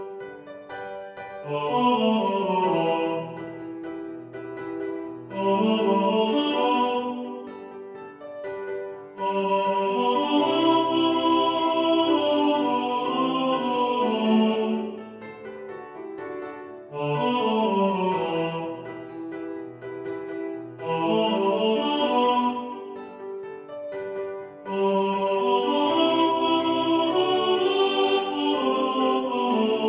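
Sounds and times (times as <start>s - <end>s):
piano: 0.0s - 29.8s
tenor singing in the foreground: 1.4s - 3.8s, 5.3s - 7.6s, 9.2s - 15.2s, 16.9s - 19.1s, 20.8s - 23.0s, 24.7s - 29.8s.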